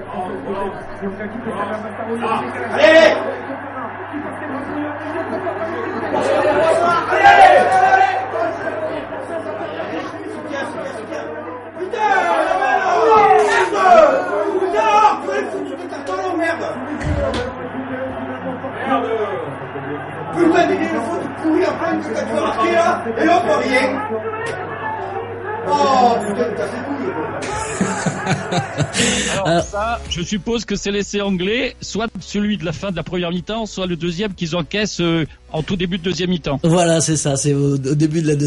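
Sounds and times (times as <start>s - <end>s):
rugby supporters shouting and chattering in a pub: 0.0s - 29.7s
speech: 0.5s - 8.0s, 18.8s - 24.8s, 25.7s - 38.4s
scattered laughter: 27.4s - 29.5s.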